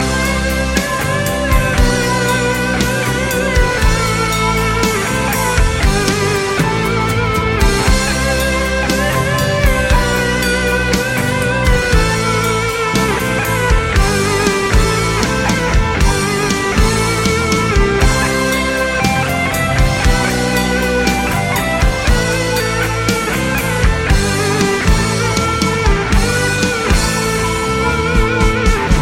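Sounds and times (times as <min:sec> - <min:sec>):
guitar: 0:00.0 - 0:29.0.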